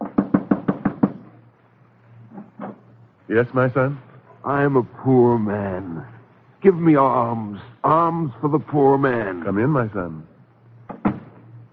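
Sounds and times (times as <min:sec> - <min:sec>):
knocking on a door: 0:00.0 - 0:01.3, 0:10.9 - 0:11.4
speech: 0:03.3 - 0:10.3.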